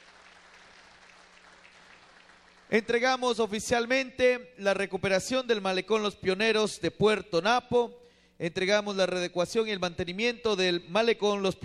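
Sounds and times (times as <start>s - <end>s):
audience applause: 0.0s - 2.7s
speech: 2.7s - 11.6s.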